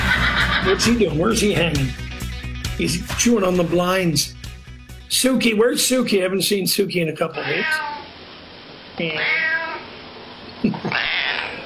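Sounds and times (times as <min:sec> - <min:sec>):
laughter: 0:00.0 - 0:01.2
speech: 0:00.7 - 0:02.1, 0:02.8 - 0:04.4, 0:05.1 - 0:07.9, 0:09.0 - 0:09.4
cat meowing: 0:07.4 - 0:08.2, 0:09.0 - 0:10.0, 0:10.8 - 0:11.6.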